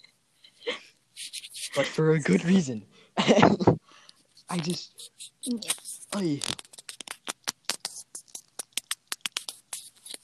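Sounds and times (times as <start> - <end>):
microphone being wiped clean of dust: 1.2 - 2.0, 4.4 - 10.2
speech: 1.8 - 3.8, 4.5 - 6.6.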